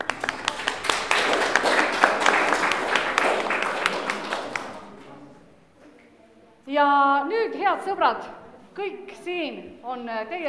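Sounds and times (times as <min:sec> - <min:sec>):
audience applause: 0:00.0 - 0:05.2
speech: 0:07.5 - 0:10.4.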